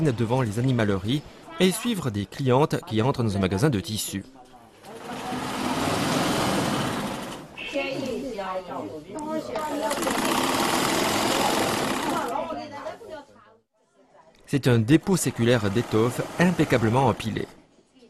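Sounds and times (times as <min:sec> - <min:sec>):
speech: 0:00.0 - 0:04.4, 0:14.5 - 0:17.6
antique sewing machine running: 0:04.8 - 0:07.6, 0:09.6 - 0:12.4, 0:14.9 - 0:17.6.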